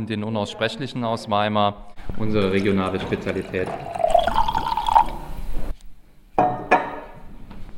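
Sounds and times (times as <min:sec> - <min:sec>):
speech: 0:00.0 - 0:04.0
wine being poured into a glass: 0:01.9 - 0:05.7.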